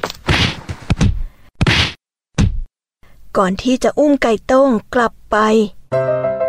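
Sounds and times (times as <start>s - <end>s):
beating blows, whacking: 0.0s - 2.7s
speech: 3.4s - 6.3s.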